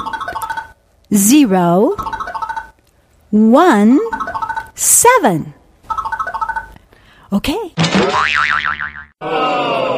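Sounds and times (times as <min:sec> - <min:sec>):
electronic keypad beeps on a vault machine: 0:00.0 - 0:00.7, 0:02.0 - 0:02.8, 0:04.1 - 0:04.8, 0:05.9 - 0:06.8
warbling boing-like electronic tones: 0:00.0 - 0:00.8, 0:02.0 - 0:02.8, 0:04.0 - 0:05.0, 0:05.9 - 0:06.8
speech: 0:01.1 - 0:02.1, 0:03.3 - 0:04.1, 0:04.8 - 0:05.6, 0:07.3 - 0:09.9.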